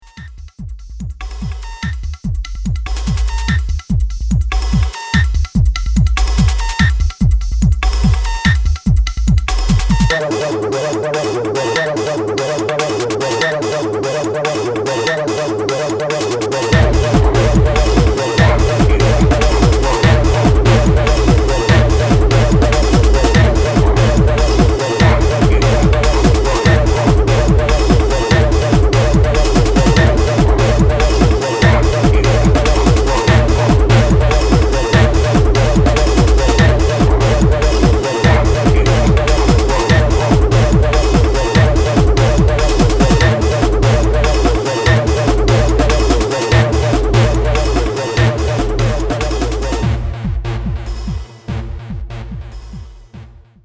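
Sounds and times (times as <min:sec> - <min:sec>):
electro music: 0:00.0 - 0:53.6.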